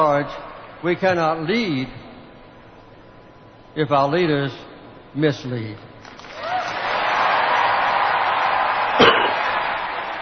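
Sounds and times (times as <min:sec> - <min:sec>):
speech: 0:00.0 - 0:02.1, 0:03.8 - 0:04.6, 0:05.2 - 0:05.9
audience applause: 0:06.2 - 0:10.2.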